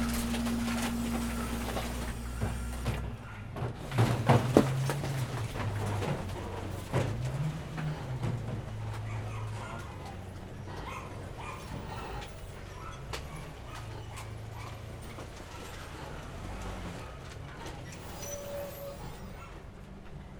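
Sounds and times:
brief high squeal: 0.0 - 2.9, 17.9 - 19.6
garbage truck clanks, bangs and mechanical rattling: 0.0 - 20.3
garbage truck engine drone: 0.0 - 20.3.

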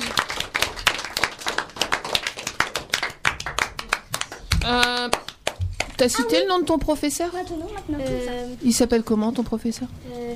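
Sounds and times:
applause: 0.0 - 6.0
speech: 4.7 - 5.2, 6.0 - 10.3.

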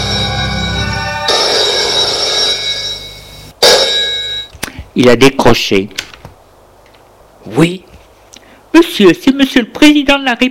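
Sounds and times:
telephone ringing: 0.0 - 4.6
speech: 5.0 - 6.1, 7.4 - 7.8, 8.8 - 10.4.

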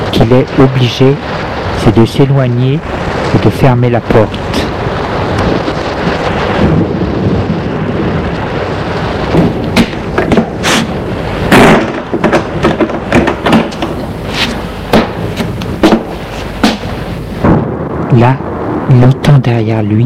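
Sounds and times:
rain: 0.0 - 20.0
strong wind: 0.0 - 20.0
speech: 0.1 - 4.6, 18.1 - 20.0.

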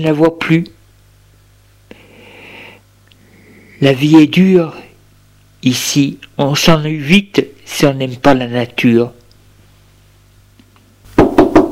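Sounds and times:
speech: 0.0 - 0.8, 3.8 - 4.8, 5.6 - 9.2
knocking on a door: 11.2 - 11.7.

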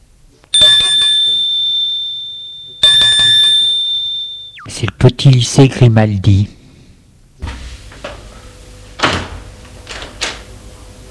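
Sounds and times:
bell rings at school entrance: 0.6 - 4.6
speech: 4.8 - 6.6.

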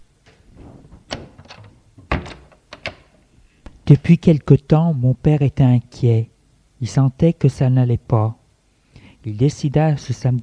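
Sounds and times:
door closing: 0.2 - 3.3
door being locked with key: 0.9 - 3.2
speech: 3.9 - 8.4, 9.2 - 10.4.

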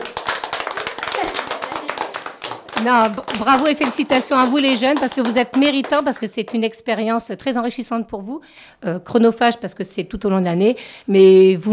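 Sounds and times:
audience applause: 0.0 - 6.1
speech: 2.8 - 11.7.

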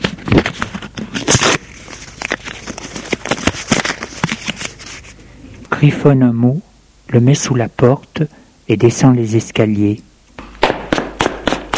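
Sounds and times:
page torn from a notebook: 0.0 - 5.1
speech: 5.8 - 10.1.

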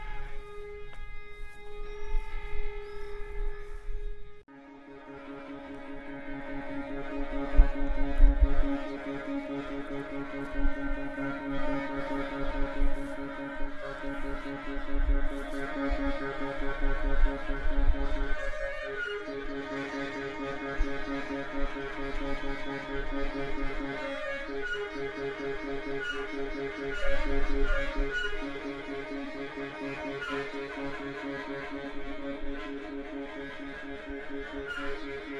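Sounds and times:
soft sustained tones from an installation in the Saline Royale: 0.0 - 35.3.

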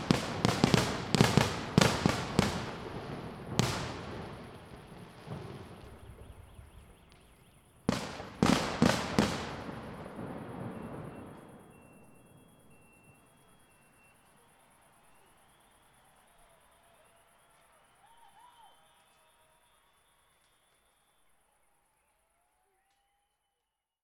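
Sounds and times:
fireworks: 0.0 - 19.2.

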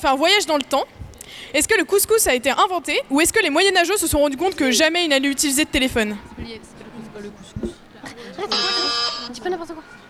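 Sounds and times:
speech: 0.0 - 10.0
people chatting: 1.6 - 10.0
people laughing: 8.0 - 9.5
quiz buzzer electronic tone: 8.5 - 9.4.

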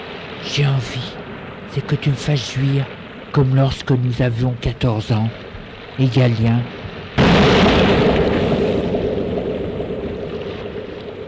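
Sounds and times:
speech: 0.4 - 5.4, 6.0 - 8.0
explosion used as censorship effect with deep rumble: 7.2 - 11.2.

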